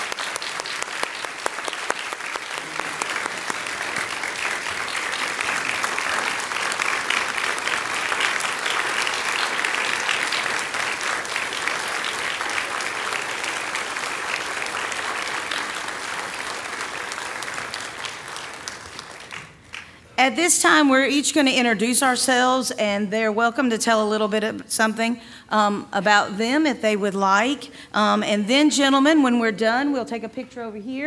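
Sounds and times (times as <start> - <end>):
audience applause: 0.0 - 20.0
speech: 20.3 - 31.0.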